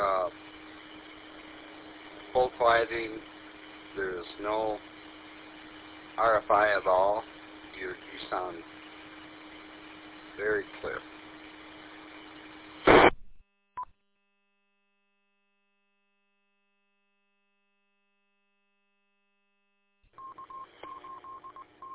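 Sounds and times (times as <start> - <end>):
radio static: 0.0 - 13.3
speech: 2.4 - 4.9, 6.2 - 8.7, 10.4 - 11.1
DTMF touch-tone beeps over radio link: 20.2 - 21.9.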